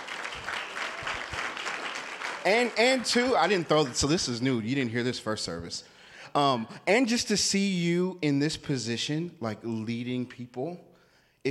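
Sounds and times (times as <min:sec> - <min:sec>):
audience clapping: 0:00.0 - 0:04.8
speech: 0:02.4 - 0:11.4.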